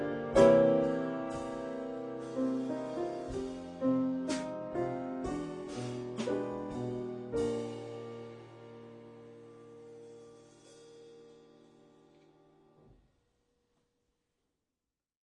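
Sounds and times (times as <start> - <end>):
drums: 0.0 - 12.0
piano: 0.0 - 13.0.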